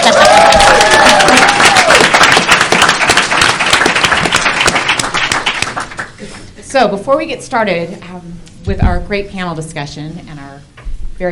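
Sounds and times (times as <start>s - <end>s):
crowd cheering and applause: 0.0s - 6.2s
speech: 6.8s - 11.3s.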